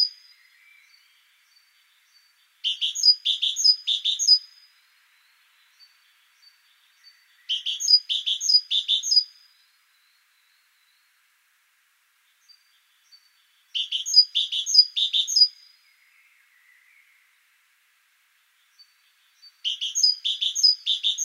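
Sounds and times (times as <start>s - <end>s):
great tit calls: 0.0s - 4.7s, 5.4s - 9.5s, 12.3s - 15.8s, 18.6s - 21.2s.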